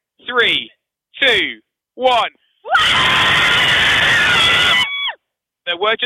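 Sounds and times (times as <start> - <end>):
speech: 0.3 - 3.2, 5.7 - 6.0
small group cheering loudly: 2.7 - 5.2.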